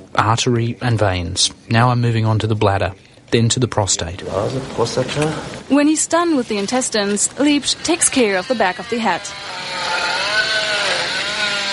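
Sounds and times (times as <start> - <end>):
speech: 0.2 - 10.0
power drill cutting into a human cranium during an autopsy: 7.0 - 11.7.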